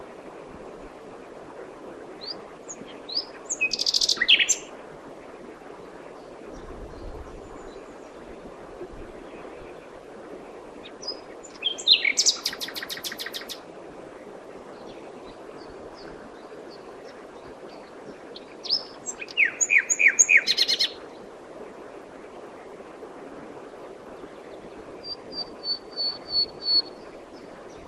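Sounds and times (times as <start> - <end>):
background hiss: 0.0 - 27.8
common nightingale song: 2.7 - 4.7, 11.0 - 13.6, 17.7 - 21.0, 25.0 - 27.1.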